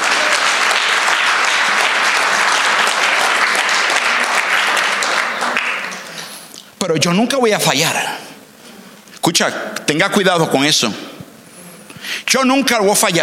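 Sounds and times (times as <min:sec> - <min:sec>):
audience applauding loudly: 0:00.0 - 0:06.6
speech: 0:06.9 - 0:08.2, 0:09.3 - 0:11.1, 0:12.3 - 0:13.2.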